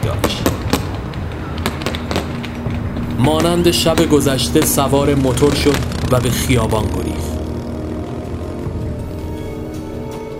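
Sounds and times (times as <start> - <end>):
firecrackers exploding in the city: 0.0 - 6.8
steady rumble: 0.0 - 10.3
speech: 3.2 - 7.4.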